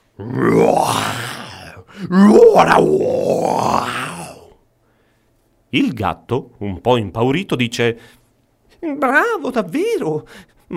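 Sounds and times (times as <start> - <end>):
person imitating lion roar: 0.2 - 4.6
speech: 2.1 - 4.0, 5.7 - 8.2, 8.8 - 10.7.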